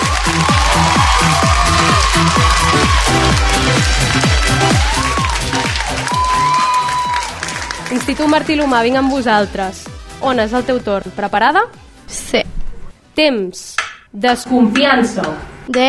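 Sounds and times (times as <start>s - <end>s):
loud audience applause: 0.0s - 9.3s
speech: 8.1s - 12.4s, 13.2s - 15.8s.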